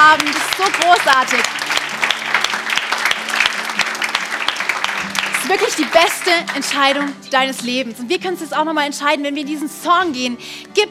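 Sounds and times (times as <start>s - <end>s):
crowd clapping: 0.0s - 7.3s
speech: 0.7s - 1.6s, 5.5s - 10.8s.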